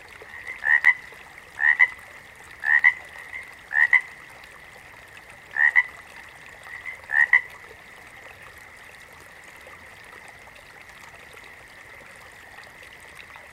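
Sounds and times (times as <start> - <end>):
water frog giving brief paired croaks: 0.2 - 2.0, 2.6 - 4.1, 5.5 - 6.0, 6.6 - 7.6.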